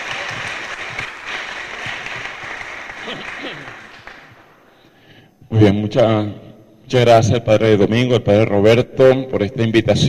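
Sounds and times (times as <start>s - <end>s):
audience applause: 0.0s - 4.6s
speech: 3.1s - 3.8s, 5.5s - 10.0s.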